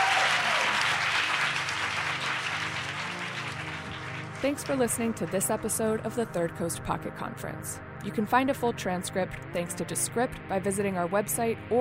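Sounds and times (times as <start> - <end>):
audience applause: 0.0 - 5.5
speech: 4.4 - 11.7.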